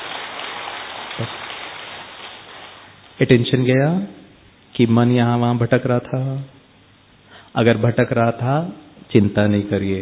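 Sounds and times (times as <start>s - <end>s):
group clapping loudly: 0.0s - 3.0s
speech: 1.2s - 1.4s, 3.2s - 4.2s, 4.8s - 6.6s, 7.5s - 10.0s.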